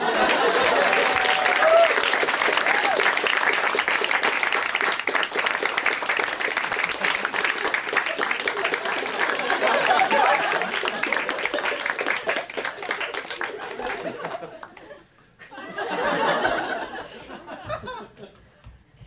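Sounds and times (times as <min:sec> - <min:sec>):
laughter: 0:00.0 - 0:01.8, 0:06.8 - 0:18.5
audience applause: 0:00.0 - 0:15.0.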